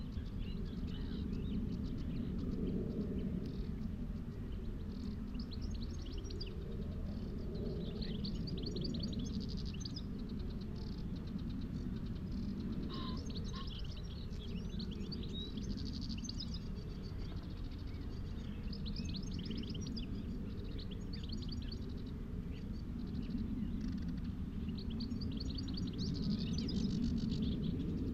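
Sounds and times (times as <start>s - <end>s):
birdsong on Higham Marshes in Kent on a May afternoon: 0.0s - 28.1s
low rumble of wind: 0.0s - 28.1s.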